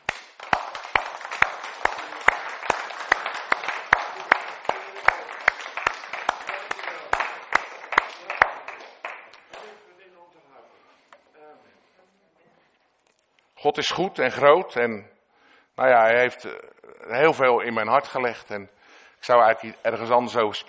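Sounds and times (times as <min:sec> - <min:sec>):
crowd applause: 0:00.0 - 0:09.8
speech: 0:13.6 - 0:15.1, 0:15.8 - 0:20.6.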